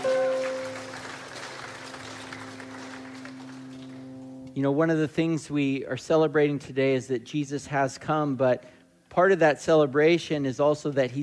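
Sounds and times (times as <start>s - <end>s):
audience applause: 0.0s - 4.3s
speech: 4.6s - 11.2s.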